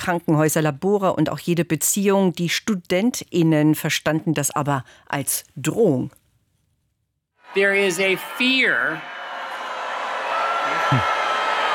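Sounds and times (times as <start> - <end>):
speech: 0.0 - 6.2, 7.5 - 9.2, 10.7 - 11.2
audience booing loudly: 7.4 - 11.7.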